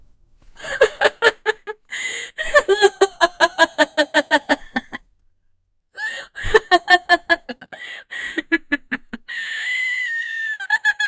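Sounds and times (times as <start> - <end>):
creative laughter: 0.6 - 5.0, 6.1 - 9.6, 10.2 - 11.0.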